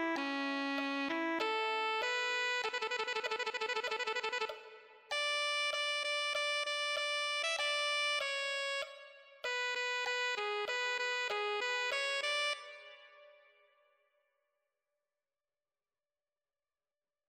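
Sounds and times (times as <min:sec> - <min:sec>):
alto saxophone: 0:00.0 - 0:13.4.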